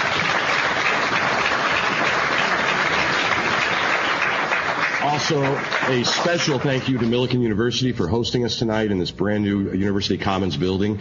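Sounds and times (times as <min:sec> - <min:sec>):
audience applause: 0:00.0 - 0:07.5
speech: 0:05.3 - 0:10.9.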